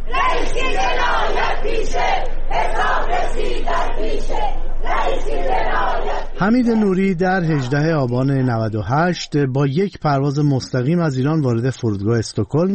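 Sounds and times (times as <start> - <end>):
protesters chanting slogans outside a courthouse: 0.0 - 8.6
speech: 1.6 - 12.7.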